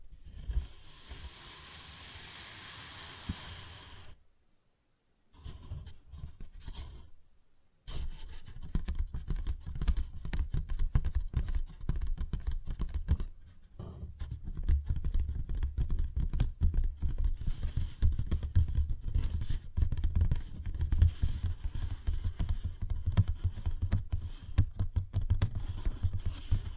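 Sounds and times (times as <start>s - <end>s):
tapping and scratching on a paper bag: 7.9s - 26.7s.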